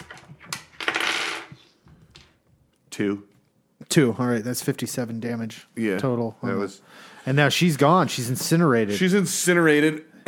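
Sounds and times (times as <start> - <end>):
dice rolling on a hard tabletop: 0.0 - 2.4
speech: 3.0 - 10.2.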